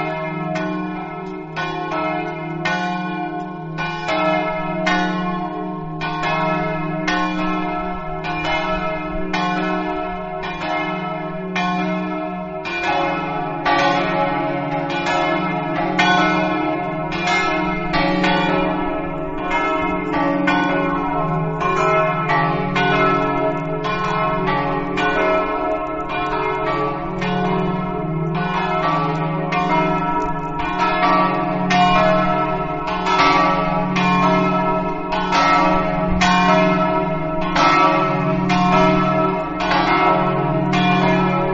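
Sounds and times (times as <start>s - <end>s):
bells of S Floriano ringing: 0.0s - 41.5s.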